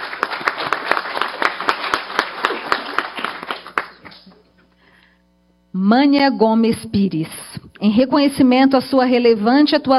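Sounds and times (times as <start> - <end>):
audience applause: 0.0 - 4.4
speech: 5.8 - 9.9.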